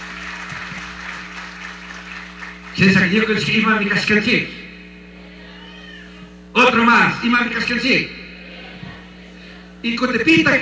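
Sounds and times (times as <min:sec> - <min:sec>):
audience applause: 0:00.0 - 0:02.8
speech: 0:02.8 - 0:04.6, 0:06.8 - 0:08.2, 0:09.8 - 0:10.5.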